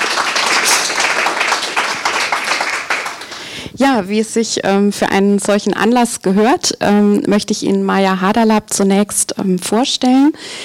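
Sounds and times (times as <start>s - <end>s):
audience applause: 0.0s - 3.6s
speech: 3.8s - 10.6s.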